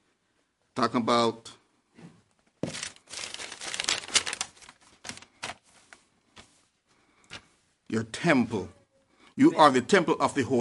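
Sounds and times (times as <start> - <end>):
speech: 0.8 - 1.6, 7.9 - 8.8, 9.4 - 10.5
paper notes rustling as they are handled: 2.6 - 7.7.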